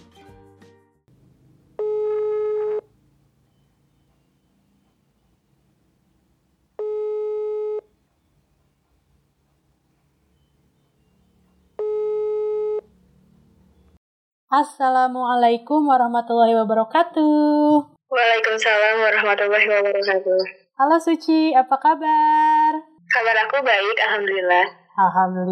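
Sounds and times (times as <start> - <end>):
telephone ringback tone on a call to a friend: 1.8 - 2.9, 6.8 - 7.9, 11.8 - 12.9
speech: 14.5 - 25.4.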